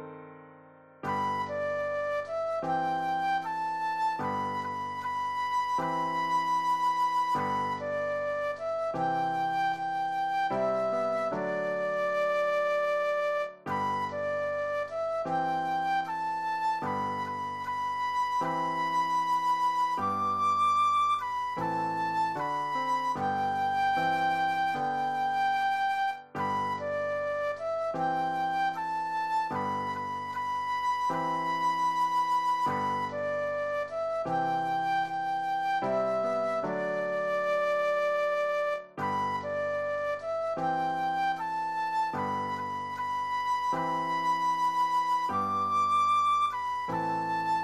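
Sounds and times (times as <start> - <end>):
flute solo: 1.0 - 47.6.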